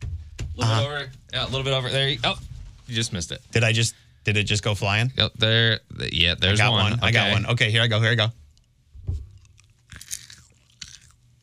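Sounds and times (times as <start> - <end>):
speech: 0.6 - 8.4
Skittles candy crunching: 9.4 - 11.4.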